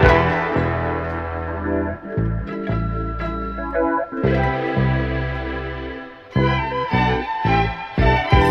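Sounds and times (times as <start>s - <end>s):
phonk music loops: 0.0s - 6.4s
strings: 0.0s - 8.4s.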